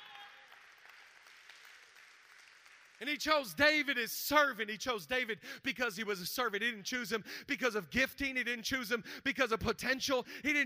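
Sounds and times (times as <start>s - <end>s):
audience clapping: 0.0s - 3.8s
speech: 3.0s - 10.6s.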